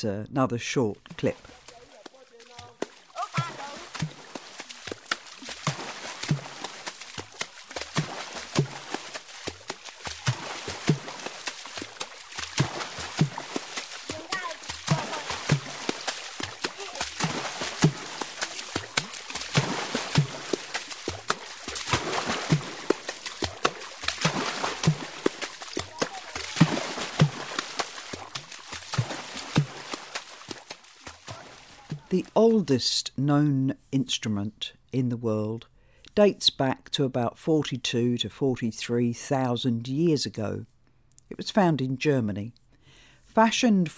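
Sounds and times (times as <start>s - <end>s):
speech: 0.0s - 1.6s, 32.4s - 40.7s, 41.3s - 42.6s, 43.4s - 43.9s
water drumming, hands slapping and scooping the water surface: 1.3s - 32.4s.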